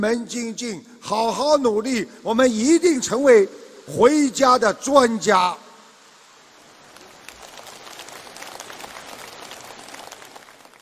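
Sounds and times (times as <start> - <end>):
speech: 0.0 - 5.6
audience applauding: 6.8 - 10.7.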